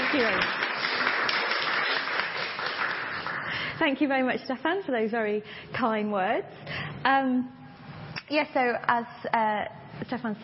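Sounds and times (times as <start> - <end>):
audience applause welcoming a speaker at a library event: 0.0 - 3.8
speech: 0.1 - 0.6, 3.8 - 7.6, 8.3 - 10.4.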